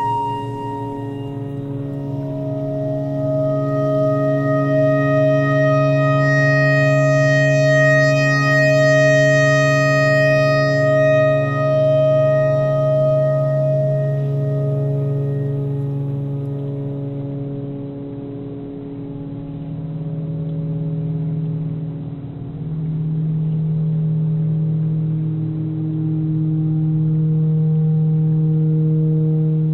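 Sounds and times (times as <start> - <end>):
clarinet notes: 0.0 - 17.4
tornado siren: 0.0 - 29.7.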